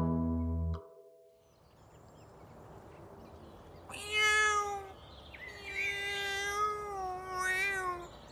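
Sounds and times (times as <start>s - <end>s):
cat meowing: 3.9s - 8.1s.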